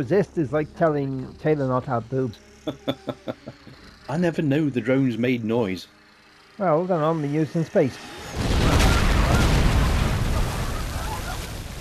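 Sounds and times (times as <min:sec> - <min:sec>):
speech: 0:00.0 - 0:06.0, 0:06.6 - 0:08.5
laughter: 0:02.6 - 0:03.9
cart exploding: 0:08.4 - 0:11.7.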